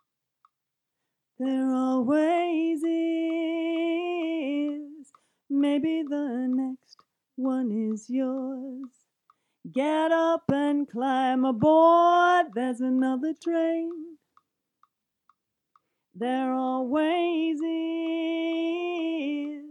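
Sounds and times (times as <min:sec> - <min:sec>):
middle vocal harmony: 0:01.4 - 0:09.0, 0:09.7 - 0:14.2, 0:16.2 - 0:19.6.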